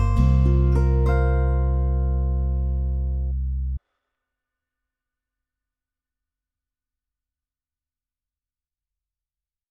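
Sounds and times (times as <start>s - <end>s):
guitar tune: 0.0s - 3.6s.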